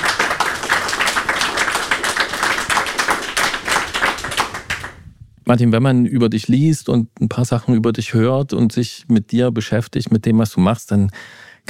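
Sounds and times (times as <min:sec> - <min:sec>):
audience clapping: 0:00.0 - 0:05.0
speech: 0:05.5 - 0:11.6.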